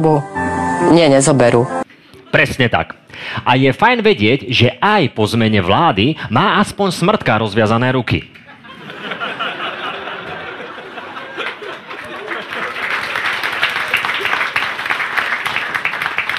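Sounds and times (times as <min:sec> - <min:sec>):
speech: 0:00.0 - 0:08.4
audience chuckling: 0:08.3 - 0:14.7
audience of a satirical weekly news show clapping: 0:10.1 - 0:16.3.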